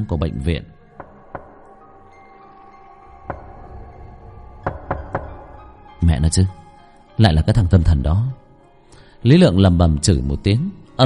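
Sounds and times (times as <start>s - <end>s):
speech: 0.0s - 0.8s, 6.2s - 6.6s, 7.2s - 8.4s, 9.2s - 11.0s
knocking on a door: 0.9s - 5.9s.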